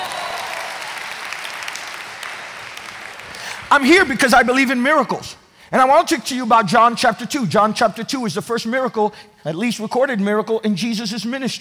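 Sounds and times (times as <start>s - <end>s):
audience clapping: 0.0s - 4.1s
speech: 3.7s - 11.5s.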